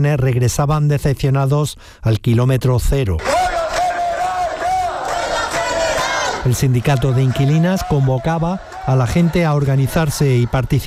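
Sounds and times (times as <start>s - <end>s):
speech: 0.0s - 3.3s, 6.4s - 10.8s
protesters shouting and chanting outside the Spanish Congress: 3.2s - 10.8s.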